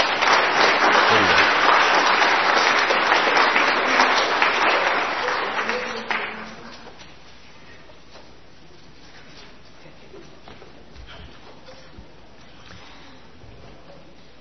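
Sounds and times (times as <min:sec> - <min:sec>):
church congregation applauding during a worship service: 0:00.0 - 0:06.6.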